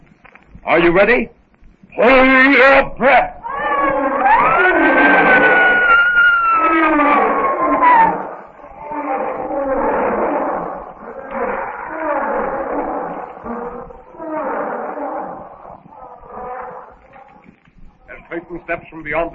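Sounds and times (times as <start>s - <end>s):
speech: 0.6s - 1.4s, 2.0s - 3.3s, 18.5s - 19.3s
lion roaring and charging: 3.3s - 18.4s.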